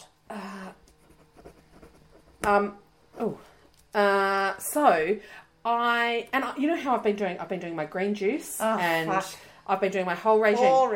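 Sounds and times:
pen scratching while writing: 1.0s - 2.5s
speech: 2.4s - 10.9s.

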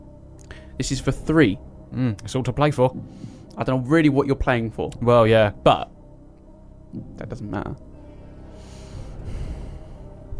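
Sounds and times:
speech: 0.8s - 5.9s, 6.9s - 7.9s
intense breathing: 3.0s - 3.6s, 8.0s - 10.3s.

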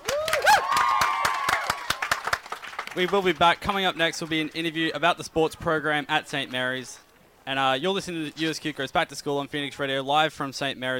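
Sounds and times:
whistles and whoops: 0.0s - 2.0s
handclaps: 0.0s - 3.4s
speech: 3.0s - 10.9s.

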